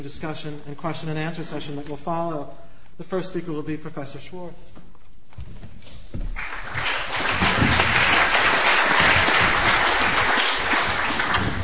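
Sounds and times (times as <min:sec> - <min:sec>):
speech: 0:00.0 - 0:04.9
crowd applauding: 0:06.4 - 0:11.6.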